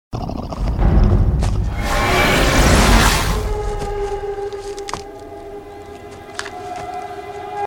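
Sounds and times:
anxious ambience: 0.2 - 5.8.

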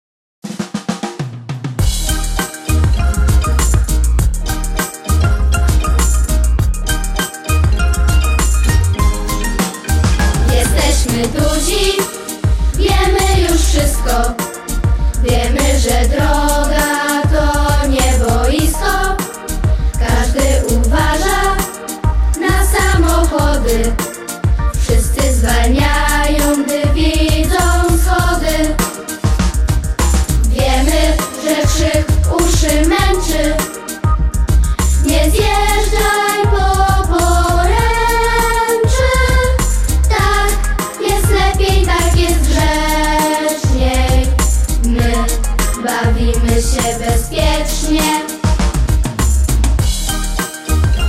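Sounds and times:
instrumental music: 0.5 - 51.0.

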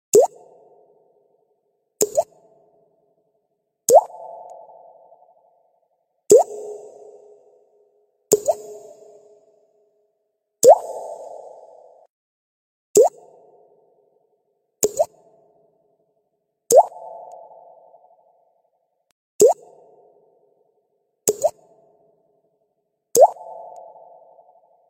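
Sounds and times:
water drop effect: 0.1 - 0.6, 2.0 - 2.6, 3.9 - 4.9, 6.3 - 7.3, 8.3 - 9.3, 10.6 - 12.0, 13.0 - 13.5, 14.8 - 15.3, 16.7 - 18.0, 19.4 - 20.2, 21.3 - 21.8, 23.2 - 24.7.

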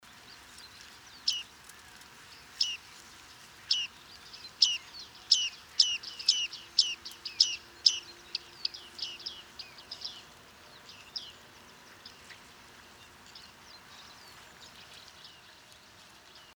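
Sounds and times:
bearded reedling Panurus biarmicus calling: 3.6 - 12.4.

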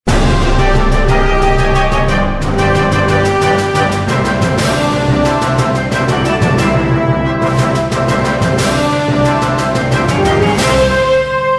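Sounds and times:
game music: 0.0 - 11.5.

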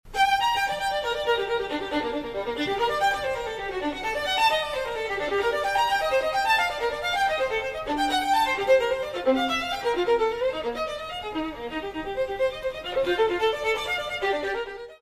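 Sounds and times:
violin: 0.1 - 14.9.

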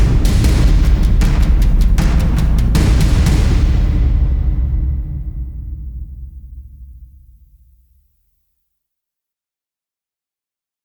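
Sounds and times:
epic sound: 0.0 - 7.8.

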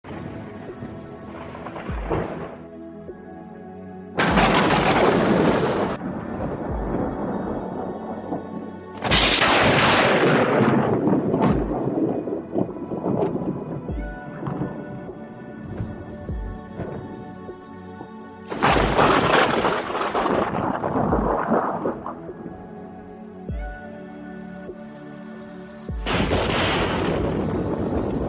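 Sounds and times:
spectacular electrical thunderstorm: 0.1 - 2.6, 4.2 - 17.3, 18.5 - 22.6, 25.9 - 28.2.

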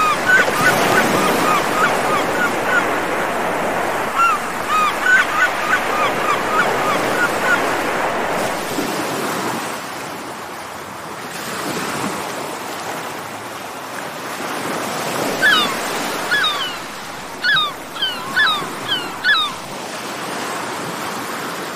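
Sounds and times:
birds: 0.0 - 8.7, 15.3 - 19.8
sea: 0.0 - 21.7.

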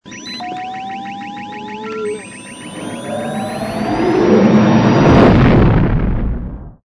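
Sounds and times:
lightspeed jump effect: 1.9 - 5.8.

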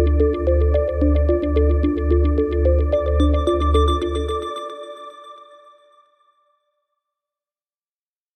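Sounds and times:
space chillout music: 0.0 - 6.2.

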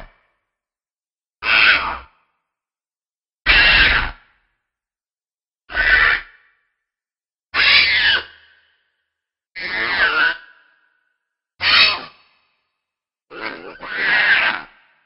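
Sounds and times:
Dimorphodon sounds: 1.4 - 2.1, 3.5 - 4.2, 5.7 - 6.3, 9.6 - 10.4, 11.6 - 12.2, 13.3 - 14.8.

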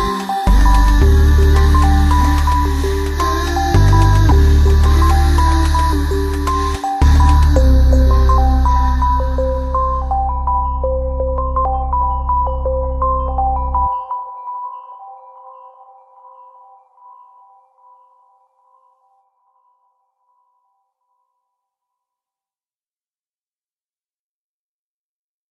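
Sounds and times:
celestial sound: 0.0 - 15.5.

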